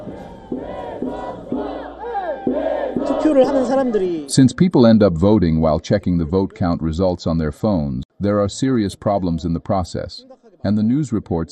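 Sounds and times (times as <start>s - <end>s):
protest crowd chanting a slogan: 0.0s - 4.3s
speech: 3.2s - 11.5s.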